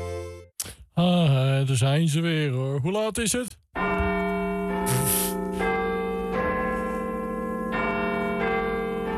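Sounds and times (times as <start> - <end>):
speech: 1.0 - 3.6
Big Ben great clock bell chiming: 3.8 - 9.1.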